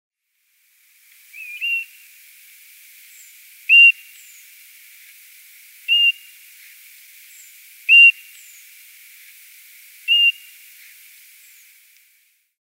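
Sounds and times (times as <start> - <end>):
European golden plover calling plaintive level whistles: 1.3 - 2.0, 3.7 - 4.4, 5.9 - 6.3, 7.9 - 8.6, 10.0 - 10.6.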